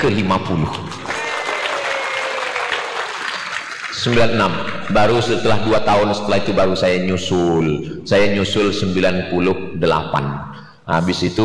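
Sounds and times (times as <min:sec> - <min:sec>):
speech: 0:00.0 - 0:01.0, 0:04.0 - 0:11.4
audience applause: 0:00.0 - 0:05.3.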